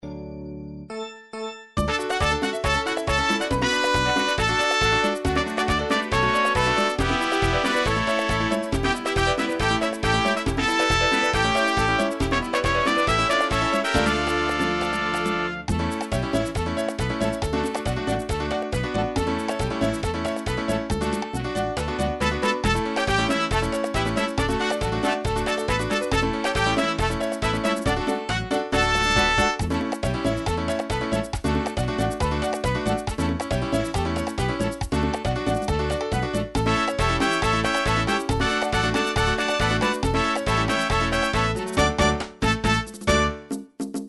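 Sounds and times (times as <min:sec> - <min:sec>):
merengue music: 0:00.8 - 0:44.0.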